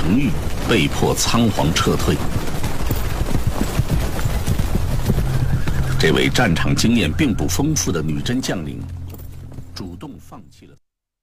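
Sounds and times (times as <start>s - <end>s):
cavalry horses galloping: 0.0s - 10.6s
speech: 0.1s - 2.6s, 6.0s - 9.0s.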